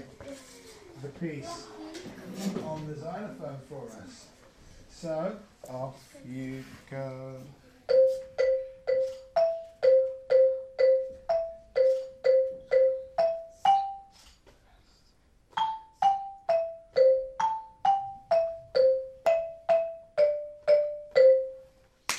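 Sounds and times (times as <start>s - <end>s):
xylophone playing solfa scale in C: 7.9s - 14.2s, 15.5s - 21.8s.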